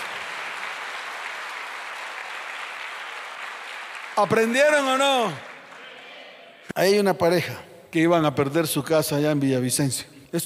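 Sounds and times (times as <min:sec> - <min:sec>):
audience applause: 0:00.0 - 0:06.4
speech: 0:04.2 - 0:05.5, 0:06.7 - 0:10.4.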